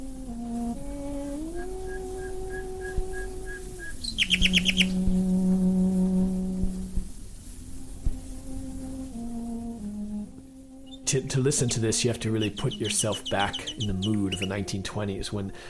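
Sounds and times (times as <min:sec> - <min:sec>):
bowed cello melody: 0:00.0 - 0:15.6
scratchy old recording noise: 0:00.0 - 0:15.6
nightingale singing: 0:00.8 - 0:05.8, 0:10.7 - 0:15.3
speech: 0:11.1 - 0:15.6.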